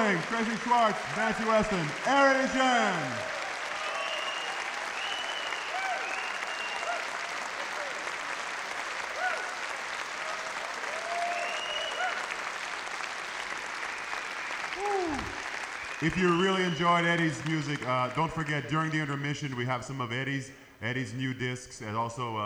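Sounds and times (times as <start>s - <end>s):
speech: 0.0s - 3.4s, 16.0s - 22.4s
crowd applause: 0.0s - 19.2s
crowd whoops and cheers: 2.5s - 8.2s, 9.1s - 12.6s, 13.8s - 16.1s.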